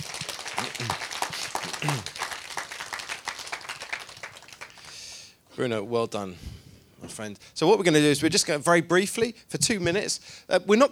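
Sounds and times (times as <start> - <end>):
audience round of applause: 0.0 - 5.3
speech: 5.6 - 10.9.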